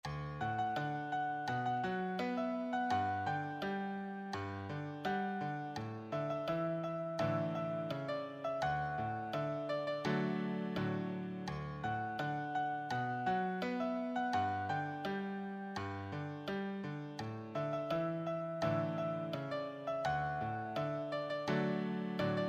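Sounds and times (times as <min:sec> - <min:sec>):
piano solo: 0:00.0 - 0:22.4.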